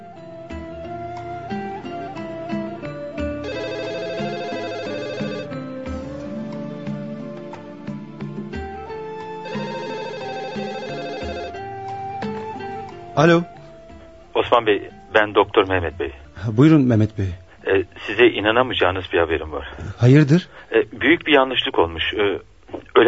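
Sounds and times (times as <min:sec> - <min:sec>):
telephone ringing: 0:03.4 - 0:05.7, 0:09.4 - 0:11.8
speech: 0:13.2 - 0:13.6, 0:14.5 - 0:23.0.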